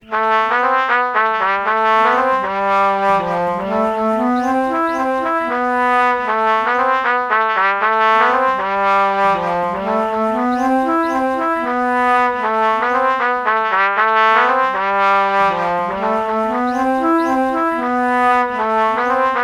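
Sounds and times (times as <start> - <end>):
alto flute melody: 0.0 - 19.4.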